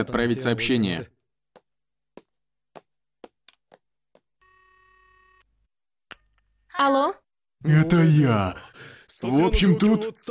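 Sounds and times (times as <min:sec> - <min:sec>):
speech: 0:00.0 - 0:01.1, 0:06.8 - 0:10.3
steady electronic telephone tone: 0:04.4 - 0:05.5.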